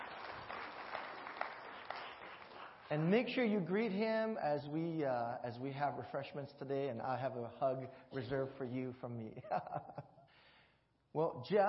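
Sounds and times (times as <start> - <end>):
church congregation applauding a visiting pastor: 0.0 - 3.1
speech: 2.9 - 10.1, 11.1 - 11.6.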